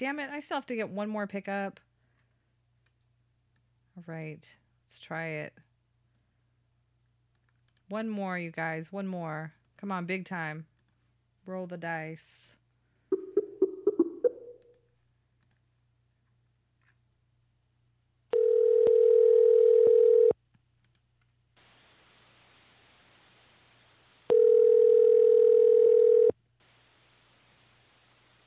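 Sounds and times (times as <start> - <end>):
speech: 0.0 - 1.9, 4.0 - 5.7, 7.9 - 10.7, 11.5 - 12.6
telephone dialing beeps: 18.4 - 20.3, 24.3 - 26.3
quiet telephone line hiss: 21.6 - 28.4.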